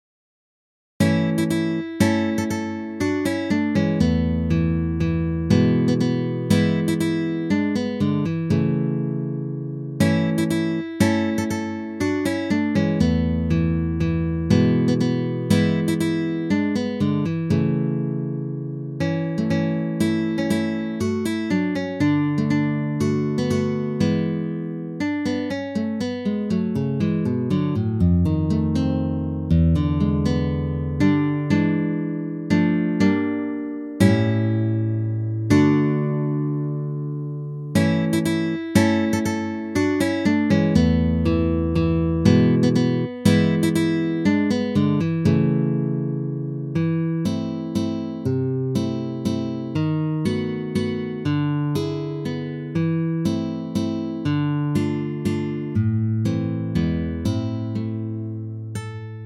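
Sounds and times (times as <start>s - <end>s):
guitar piece: 1.0s - 59.2s.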